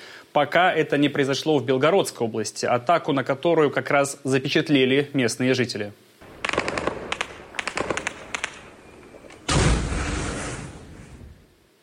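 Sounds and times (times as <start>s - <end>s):
speech: 0.4s - 6.0s
bursts of gunfire shooting at drones: 6.2s - 11.2s.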